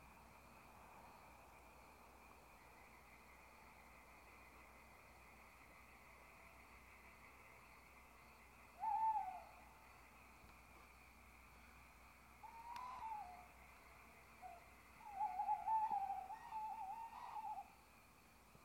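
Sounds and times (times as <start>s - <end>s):
owl hooting: 8.8s - 9.7s, 12.4s - 13.7s, 14.4s - 17.8s.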